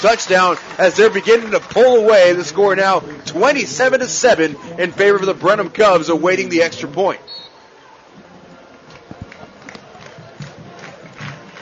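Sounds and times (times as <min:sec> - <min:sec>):
crowd clapping in rhythm: 0:00.0 - 0:04.2, 0:08.8 - 0:11.6
speech: 0:00.0 - 0:07.4.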